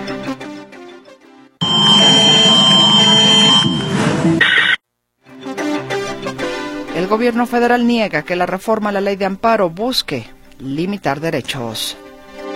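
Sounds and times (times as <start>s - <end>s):
seismic alert alarm on mobile phones: 1.6s - 4.8s
speech: 7.1s - 12.0s.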